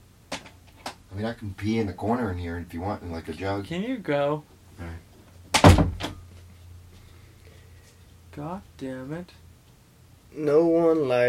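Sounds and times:
low hum: 0:00.0 - 0:11.2
speech: 0:01.2 - 0:05.1, 0:08.4 - 0:09.4, 0:10.3 - 0:11.2
door closing quietly: 0:05.5 - 0:06.2.

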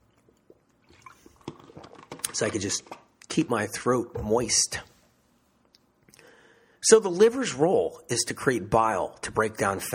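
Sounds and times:
person sipping herbal tea: 0:00.0 - 0:02.3
speech: 0:02.3 - 0:04.9, 0:06.9 - 0:09.9.

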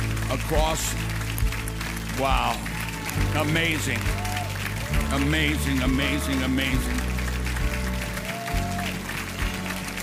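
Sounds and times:
audience clapping hands: 0:00.0 - 0:10.0
speech: 0:00.3 - 0:01.2, 0:02.2 - 0:04.3, 0:05.1 - 0:07.1.

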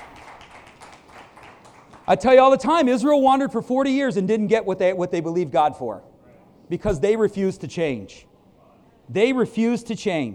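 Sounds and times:
people clapping: 0:00.0 - 0:03.1
speech: 0:02.1 - 0:06.1, 0:06.7 - 0:08.3, 0:09.1 - 0:10.3.

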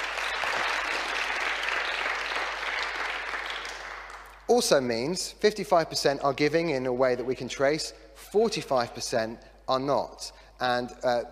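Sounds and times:
crowd applause: 0:00.0 - 0:04.4
speech: 0:04.5 - 0:11.2.

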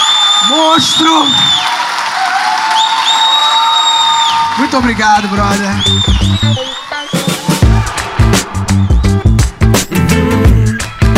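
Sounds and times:
audience applause and cheering: 0:00.0 - 0:11.1
speech: 0:00.5 - 0:01.8, 0:04.6 - 0:06.8.

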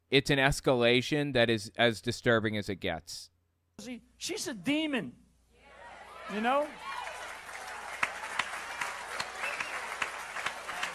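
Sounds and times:
speech: 0:00.1 - 0:05.2, 0:06.3 - 0:07.0
group of people applauding: 0:06.0 - 0:10.9.

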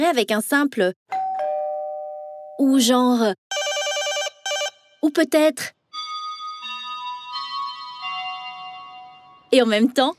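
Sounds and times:
speech: 0:00.0 - 0:01.1, 0:02.6 - 0:03.4, 0:05.0 - 0:05.8, 0:09.5 - 0:10.1
four-note doorbell chime melody: 0:01.2 - 0:02.6, 0:06.0 - 0:09.5.

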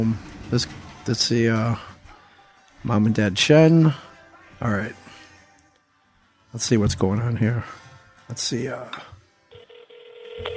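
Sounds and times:
speech: 0:00.0 - 0:01.9, 0:02.8 - 0:05.0, 0:06.5 - 0:09.1
telephone dialing a call: 0:09.5 - 0:10.5.

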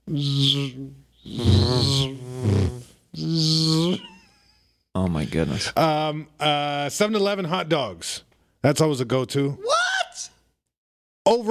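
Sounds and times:
speech: 0:00.1 - 0:02.2, 0:05.3 - 0:09.7
fly buzzing: 0:00.1 - 0:04.0.

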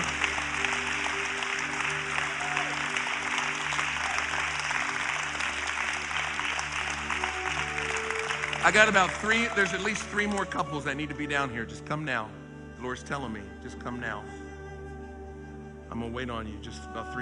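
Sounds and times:
audience clapping: 0:00.0 - 0:11.2
speech: 0:08.6 - 0:14.4, 0:15.9 - 0:17.1.

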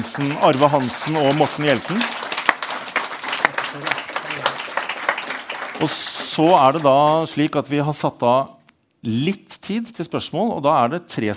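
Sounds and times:
audience applause: 0:00.0 - 0:07.6
speech: 0:00.1 - 0:02.3, 0:03.8 - 0:04.0, 0:05.8 - 0:11.3.

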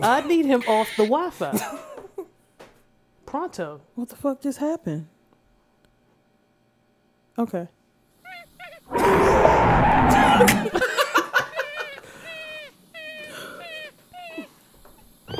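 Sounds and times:
speech: 0:00.0 - 0:01.9, 0:03.3 - 0:05.1, 0:07.4 - 0:07.8
jungle cat roaring: 0:08.9 - 0:10.8
laughter: 0:10.1 - 0:12.1.

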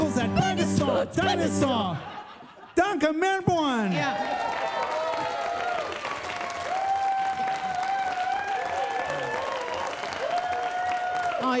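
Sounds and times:
speech: 0:01.0 - 0:02.2, 0:02.8 - 0:04.6
laughter: 0:01.3 - 0:03.1
audience clapping: 0:04.0 - 0:11.5.

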